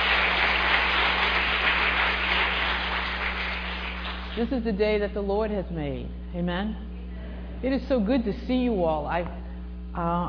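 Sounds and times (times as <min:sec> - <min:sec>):
audience applause, praise clap: 0:00.0 - 0:04.4
speech: 0:04.4 - 0:06.9, 0:07.6 - 0:09.4, 0:10.0 - 0:10.2.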